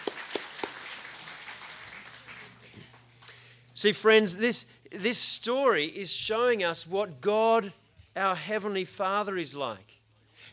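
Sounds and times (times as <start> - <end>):
small round of applause: 0.0 - 3.5
speech: 3.8 - 10.0.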